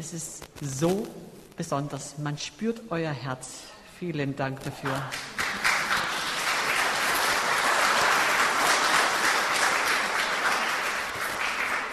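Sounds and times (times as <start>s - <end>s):
speech: 0.0s - 5.7s
audience applause: 5.1s - 11.9s.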